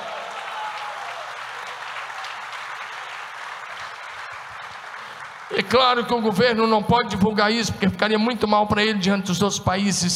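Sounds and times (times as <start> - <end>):
audience applause: 0.0 - 6.4
speech: 5.5 - 10.1.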